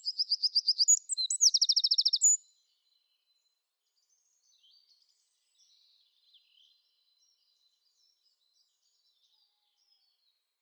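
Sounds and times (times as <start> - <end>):
Eurasian wren Troglodytes troglodytes singing typical song with trills: 0.0 - 2.4.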